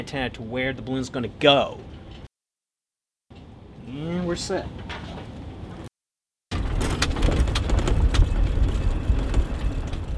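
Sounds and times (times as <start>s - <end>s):
speech: 0.0s - 1.9s, 3.9s - 5.1s
wind blowing outdoors: 6.6s - 10.1s.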